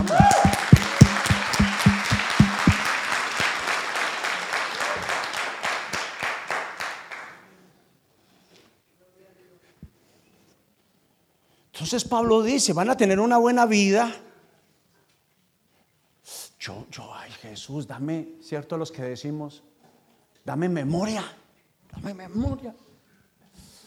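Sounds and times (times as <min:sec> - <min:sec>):
group applauding: 0:00.0 - 0:07.6
speech: 0:11.9 - 0:14.3, 0:17.6 - 0:19.7, 0:20.4 - 0:22.9.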